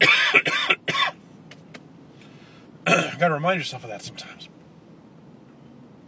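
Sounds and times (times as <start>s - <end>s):
person coughing after nearly choking on a drink: 0.0s - 1.2s, 2.9s - 3.2s
speech: 3.2s - 4.5s.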